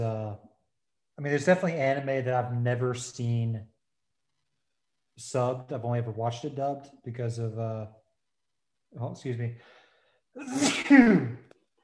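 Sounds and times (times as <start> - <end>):
speech: 1.2 - 3.7, 5.2 - 8.0, 8.9 - 9.8, 10.4 - 11.4
sneeze: 10.4 - 11.4.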